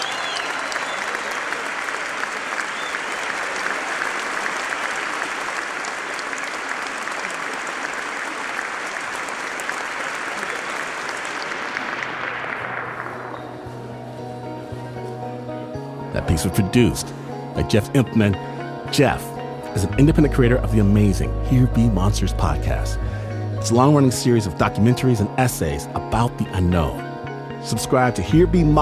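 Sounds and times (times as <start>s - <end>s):
audience applause: 0.0s - 13.7s
speech: 16.3s - 27.0s, 27.6s - 28.8s.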